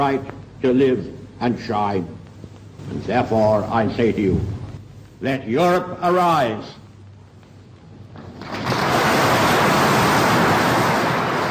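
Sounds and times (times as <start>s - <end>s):
speech: 0.0s - 2.2s, 2.9s - 4.6s, 5.2s - 6.8s
strong applause from audience: 8.4s - 11.4s.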